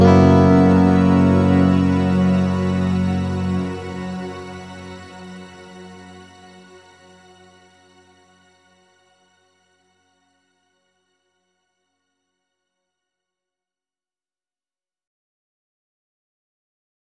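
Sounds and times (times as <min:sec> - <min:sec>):
electric guitar: 0:00.0 - 0:05.5.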